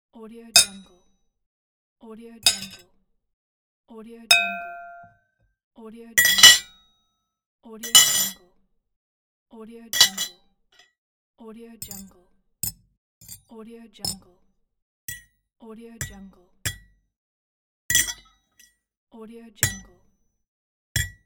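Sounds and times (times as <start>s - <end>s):
silverware hitting a plate: 0.6s - 0.9s, 2.5s - 2.8s, 4.3s - 5.1s, 6.2s - 6.7s, 7.9s - 8.4s, 10.0s - 10.3s, 17.9s - 18.4s, 19.6s - 19.9s, 21.0s - 21.2s.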